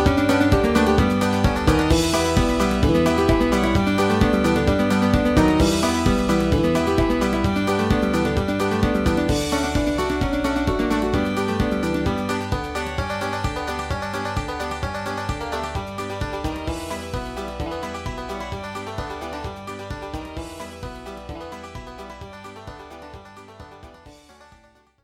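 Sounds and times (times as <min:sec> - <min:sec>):
bluegrass banjo in G: 0:00.0 - 0:25.0.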